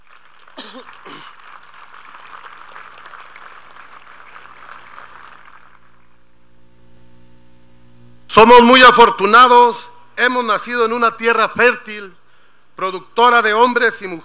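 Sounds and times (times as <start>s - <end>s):
strong audience applause: 0.0s - 6.2s
speech: 8.4s - 12.2s, 12.8s - 14.2s.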